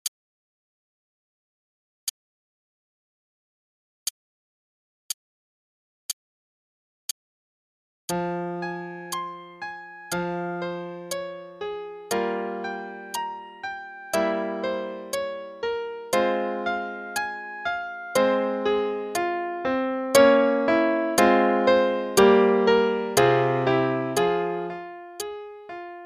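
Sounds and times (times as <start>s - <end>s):
sonata play-along: 8.1s - 26.0s.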